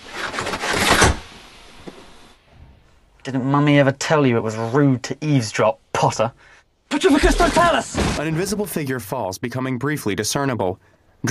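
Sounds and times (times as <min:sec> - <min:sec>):
train car window blinds dropping: 0:00.0 - 0:01.4
speech: 0:03.3 - 0:11.3.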